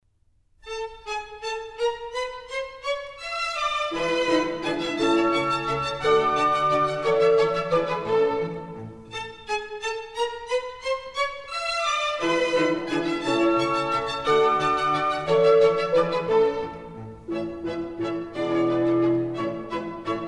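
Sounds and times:
dance piece in A major: 0.6s - 20.2s.

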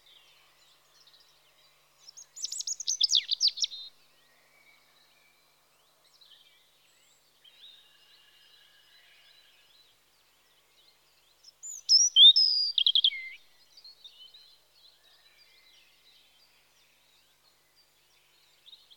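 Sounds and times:
European robin Erithacus rubecula singing in spring: 2.0s - 4.0s, 11.4s - 14.4s.

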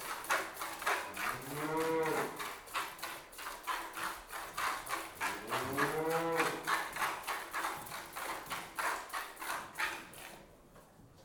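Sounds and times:
milk squirting into a pail: 0.0s - 10.6s
cow mooing: 1.3s - 2.4s, 5.4s - 6.7s.

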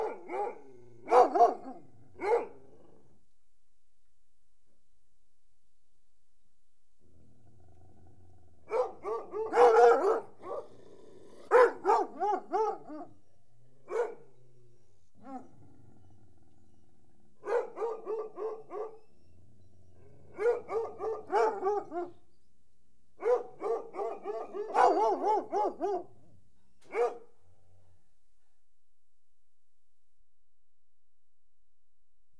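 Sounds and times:
dog barking: 0.0s - 2.6s, 8.7s - 10.7s, 11.5s - 13.2s, 13.8s - 14.3s, 17.4s - 19.0s, 20.3s - 22.2s, 23.2s - 26.1s, 26.9s - 27.4s.

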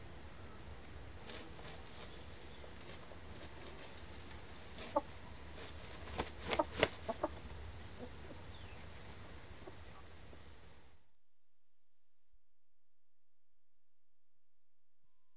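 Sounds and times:
chickens scratching: 0.1s - 10.7s.

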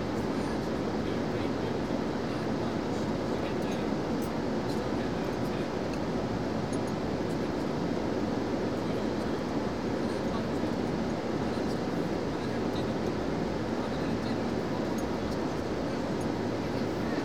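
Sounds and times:
aircraft mid-flight at supersonic speed: 0.0s - 17.2s.

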